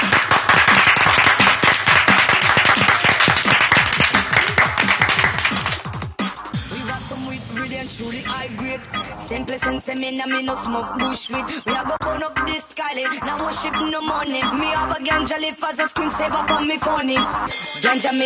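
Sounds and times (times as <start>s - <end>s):
applause for a DJ: 0.0s - 6.1s
speech: 9.3s - 18.2s.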